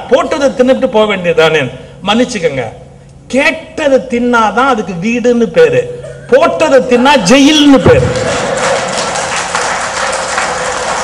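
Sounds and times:
speech: 0:00.1 - 0:08.3
audience clapping: 0:07.9 - 0:11.0.

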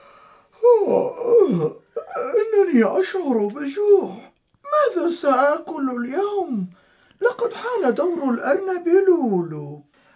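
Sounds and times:
narrator imitating a jackal yawning: 0:00.6 - 0:01.8
speech: 0:00.9 - 0:01.8, 0:02.7 - 0:09.9.

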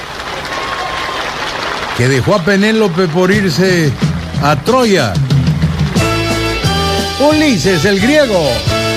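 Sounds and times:
applause: 0:00.0 - 0:06.6
speech: 0:02.0 - 0:05.3, 0:07.2 - 0:08.8.

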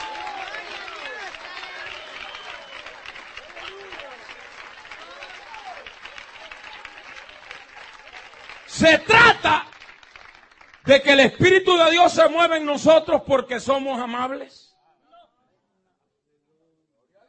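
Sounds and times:
voices cheering and calling out: 0:00.0 - 0:09.8
church congregation clapping during an evening service: 0:00.0 - 0:13.1
speech: 0:08.8 - 0:09.7, 0:10.9 - 0:14.6.

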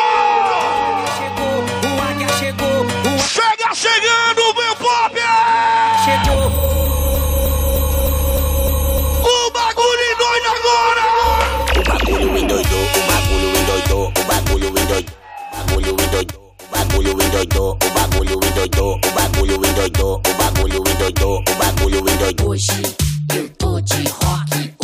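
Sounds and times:
football supporters shouting and cheering: 0:00.0 - 0:02.5, 0:03.2 - 0:06.7, 0:09.2 - 0:14.1, 0:14.8 - 0:16.3
pounding electronic dance beat in a DJ mix: 0:06.2 - 0:09.5, 0:11.3 - 0:24.8.

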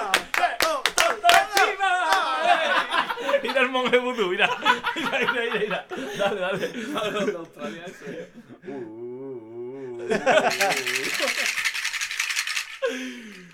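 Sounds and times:
laughter: 0:00.0 - 0:13.5
speech: 0:03.7 - 0:09.1, 0:10.0 - 0:11.6
rain stick being shaken: 0:10.4 - 0:13.5.

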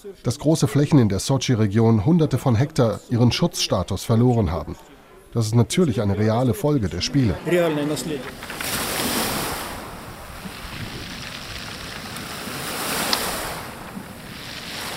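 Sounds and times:
speech: 0:00.0 - 0:08.8
sea waves on a pebble beach: 0:07.5 - 0:14.9.

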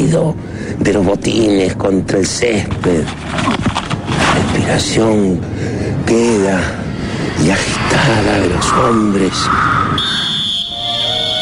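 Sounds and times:
speech: 0:00.1 - 0:03.6, 0:04.4 - 0:06.8, 0:07.4 - 0:10.2
referee's whistle: 0:09.7 - 0:11.4.

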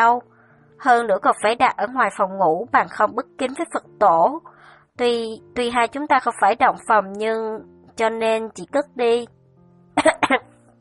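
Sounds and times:
speech: 0:00.0 - 0:09.4, 0:10.0 - 0:10.5
woman coughing: 0:10.0 - 0:10.5.

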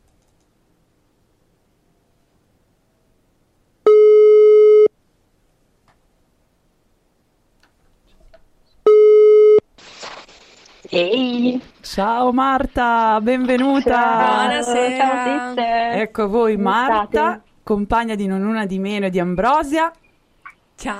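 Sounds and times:
telephone line ringing tones while placing call: 0:03.9 - 0:04.9
speech: 0:11.0 - 0:20.0, 0:20.8 - 0:20.9.

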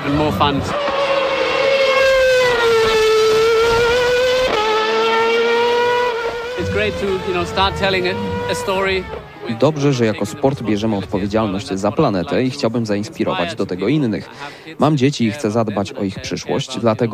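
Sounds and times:
Red Bull racing car on zero-emission fuel screaming during a demonstration drive: 0:00.0 - 0:12.0
speech: 0:00.1 - 0:00.9, 0:06.8 - 0:17.1.

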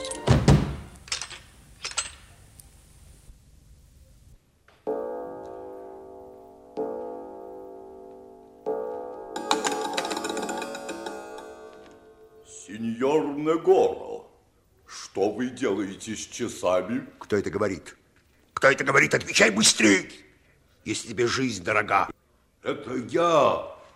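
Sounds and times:
doors slamming shut: 0:00.2 - 0:01.3
rough clattering noise: 0:09.4 - 0:12.2
speech: 0:13.0 - 0:14.0, 0:15.2 - 0:18.0, 0:18.6 - 0:23.8.

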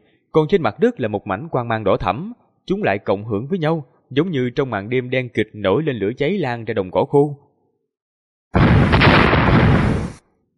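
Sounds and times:
speech: 0:00.4 - 0:07.4
deep rumbling explosion from underground: 0:08.6 - 0:10.2.

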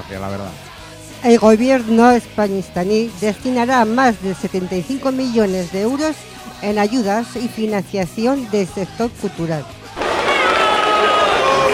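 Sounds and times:
speech: 0:00.0 - 0:09.8
crowd booing: 0:09.9 - 0:11.7.

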